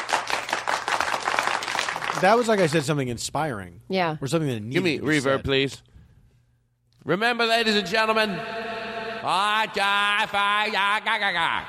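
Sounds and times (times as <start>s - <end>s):
many hands clapping: 0.0s - 3.0s
speech: 2.2s - 5.9s, 7.0s - 11.6s.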